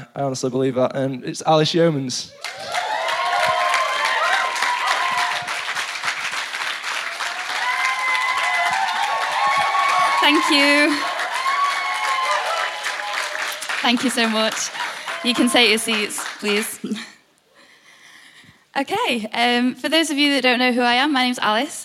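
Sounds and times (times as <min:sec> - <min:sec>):
speech: 0:00.2 - 0:02.8, 0:10.3 - 0:11.1, 0:13.8 - 0:17.1, 0:18.8 - 0:21.8
audience applause and cheering: 0:02.3 - 0:16.9.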